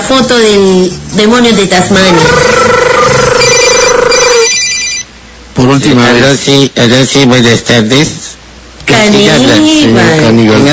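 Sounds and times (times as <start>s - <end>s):
speech: 0.1s - 3.5s, 5.6s - 8.2s, 8.9s - 10.7s
telephone ringing with warbling electronic tone: 2.1s - 5.1s.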